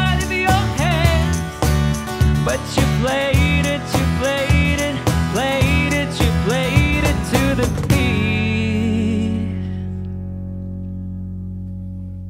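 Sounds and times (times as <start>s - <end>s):
vocals: 0.0s - 10.1s.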